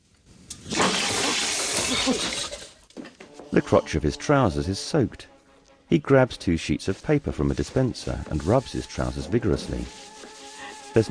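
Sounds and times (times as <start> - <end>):
water spurting from a wash basin tap: 0.5 - 2.8
speech: 2.0 - 2.5, 3.6 - 5.3, 5.9 - 10.0.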